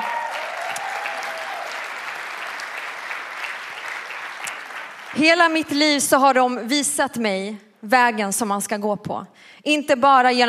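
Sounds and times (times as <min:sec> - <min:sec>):
audience applause: 0:00.0 - 0:05.6
speech: 0:05.2 - 0:10.4.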